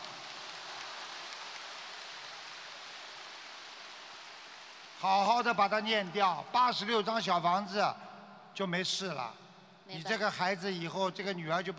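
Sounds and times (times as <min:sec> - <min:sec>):
applause: 0:00.0 - 0:06.5
speech: 0:05.0 - 0:11.7.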